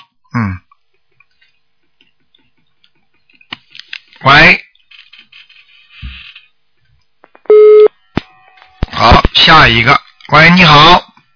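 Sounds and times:
telephone busy tone after dropped call: 0:07.5 - 0:07.9
speech: 0:09.6 - 0:11.0.

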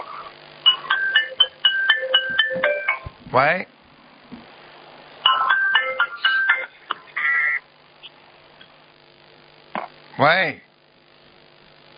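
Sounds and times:
phone ringtone: 0:00.7 - 0:03.1, 0:05.2 - 0:06.8
speech: 0:03.3 - 0:04.4, 0:10.2 - 0:10.7.

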